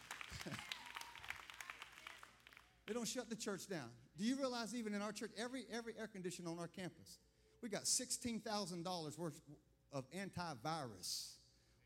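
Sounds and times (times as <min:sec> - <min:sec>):
sparse handclaps from a few people: 0:00.0 - 0:02.7
speech: 0:00.4 - 0:00.7, 0:02.9 - 0:11.8.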